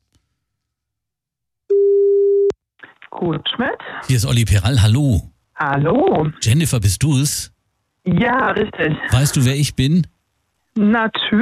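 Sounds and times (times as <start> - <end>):
German telephone ringing tone on a call line: 1.7 - 2.5
speech: 3.2 - 10.1, 10.8 - 11.3.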